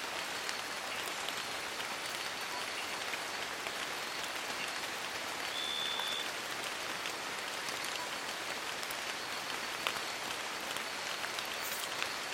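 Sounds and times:
gentle rain in a Borneo rainforest: 0.0 - 12.3
thin bright insect tone: 11.6 - 12.0.

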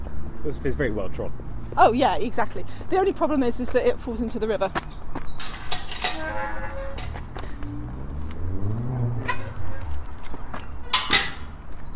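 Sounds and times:
speech: 0.5 - 5.2
metal gate clanking and clanging shut: 5.4 - 7.5, 9.1 - 9.7, 10.5 - 11.7
metal gate creaking open: 5.4 - 7.5, 10.5 - 11.7.

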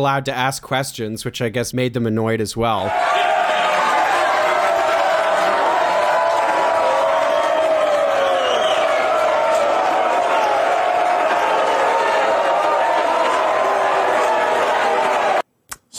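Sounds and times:
speech: 0.0 - 3.4
crowd shouting and booing: 2.9 - 15.4.

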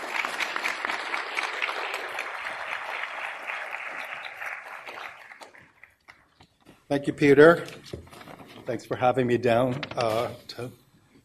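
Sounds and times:
lecture audience applause at LSE welcoming a professor: 0.0 - 6.3
speech: 6.9 - 8.0, 8.7 - 10.8.

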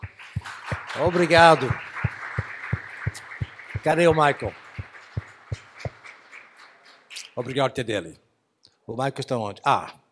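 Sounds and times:
low beats: 0.0 - 6.0
crowd clapping hands in a reverberant room: 0.0 - 7.6
speech: 1.0 - 1.9, 3.8 - 4.6, 7.4 - 8.2, 8.9 - 10.0.

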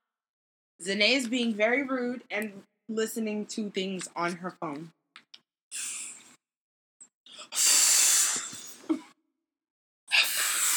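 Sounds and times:
speech: 0.8 - 5.0
forceful breath blown out through the lips: 7.5 - 8.8, 10.1 - 10.7.

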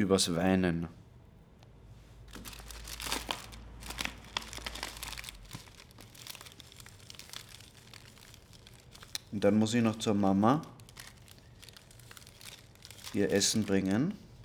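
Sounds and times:
speech: 0.0 - 1.0, 9.3 - 10.8, 13.2 - 14.2
paper crinkling and rustling while rolling a joint: 2.2 - 14.4.

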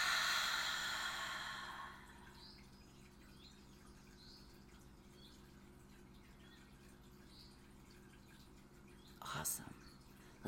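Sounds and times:
deep breath in through the nose and released during a guided relaxation exercise: 0.0 - 2.1
speech: 9.4 - 10.4.

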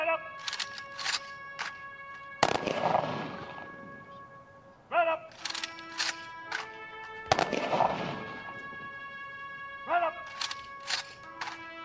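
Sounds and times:
21-gun salute volleys at a memorial farewell: 0.0 - 11.8.

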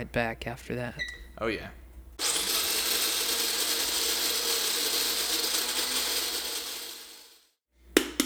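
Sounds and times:
speech: 0.0 - 2.3
coffee grinder grinding beans: 2.2 - 7.5.

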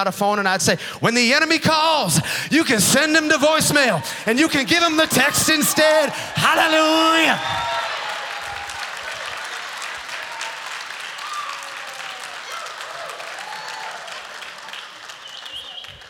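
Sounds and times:
speech: 0.0 - 7.7
audience cheering: 2.8 - 16.0.

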